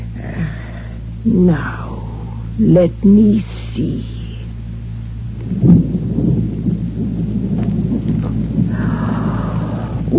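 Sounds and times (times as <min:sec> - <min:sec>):
constant hiss of rain: 0:00.0 - 0:10.1
speech: 0:01.2 - 0:01.9, 0:02.6 - 0:04.1, 0:05.4 - 0:06.3
deep rolling thunder: 0:05.1 - 0:10.1.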